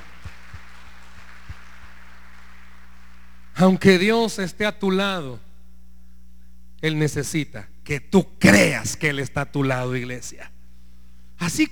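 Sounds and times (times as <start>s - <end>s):
audience applauding: 0.0s - 3.5s
speech: 3.6s - 5.4s, 6.8s - 10.5s, 11.4s - 11.7s.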